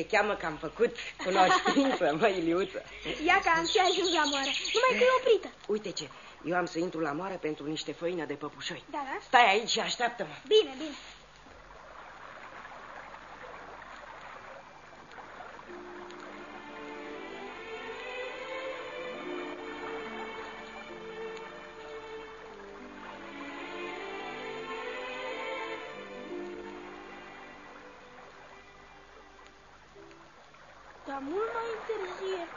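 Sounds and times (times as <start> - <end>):
speech: 0.0 - 11.2
laughter: 1.2 - 3.4
faint low tonal murmur: 11.3 - 32.5
river water rushing and gurgling over shallows at a ford: 11.5 - 32.5.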